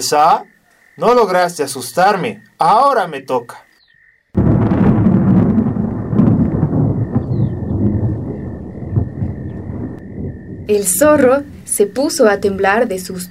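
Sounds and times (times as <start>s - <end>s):
speech: 0.0s - 3.6s, 10.7s - 13.2s
thunder rumbling: 4.4s - 13.2s.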